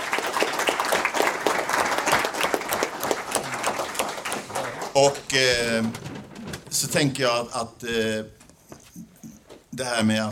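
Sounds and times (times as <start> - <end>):
audience applause: 0.0 - 6.0
speech: 5.0 - 6.1, 6.7 - 8.4, 9.8 - 10.2.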